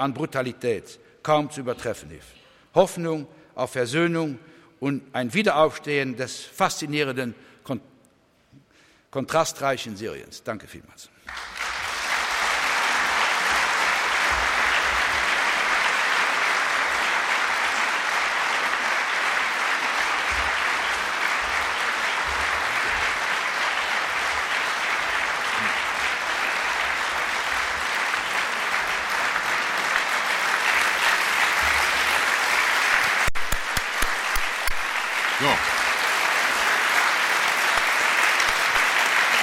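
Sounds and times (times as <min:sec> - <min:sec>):
speech: 0:00.0 - 0:07.9, 0:09.1 - 0:11.5
audience applause: 0:11.3 - 0:39.4.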